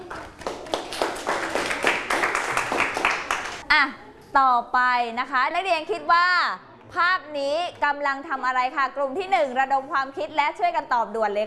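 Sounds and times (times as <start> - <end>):
classroom students applauding: 0.0 - 3.6
speech: 3.8 - 11.4.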